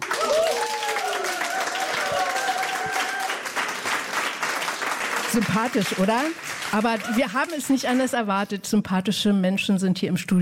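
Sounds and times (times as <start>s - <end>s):
studio audience applause: 0.0s - 8.3s
speech: 5.3s - 10.3s.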